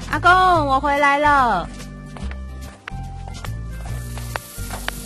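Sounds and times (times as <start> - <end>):
speech: 0.3 - 1.8
food sizzling in a frying pan: 3.9 - 5.0.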